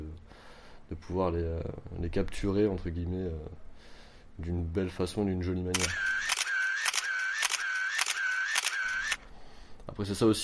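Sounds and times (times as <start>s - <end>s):
speech: 0.9s - 6.2s, 10.0s - 10.4s
camera mechanical whir: 5.8s - 9.2s
camera shutter clicks: 5.8s - 9.2s.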